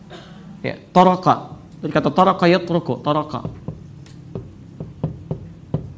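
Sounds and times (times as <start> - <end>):
speech: 0.6 - 3.6
slow soft knocking on a door: 3.4 - 5.9.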